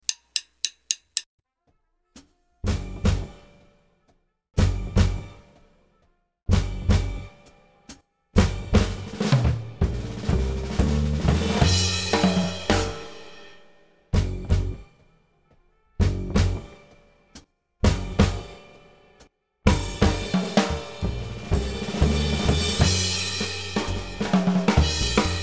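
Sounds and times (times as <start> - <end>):
bass drums: 2.7 - 3.4, 4.6 - 5.4, 6.5 - 7.3, 8.4 - 13.1, 14.2 - 14.8, 16.0 - 16.8, 17.8 - 18.6, 19.7 - 25.4.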